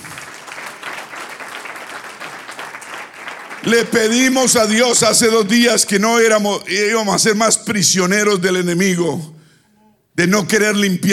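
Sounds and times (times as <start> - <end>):
audience applause: 0.0 - 5.0
speech: 3.6 - 9.4, 10.2 - 11.1.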